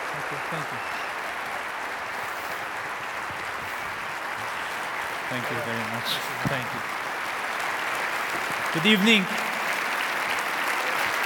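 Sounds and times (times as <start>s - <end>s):
audience applause welcoming a speaker at a Colorado event: 0.0s - 11.2s
speech: 0.3s - 1.1s, 5.3s - 7.0s, 8.4s - 9.5s.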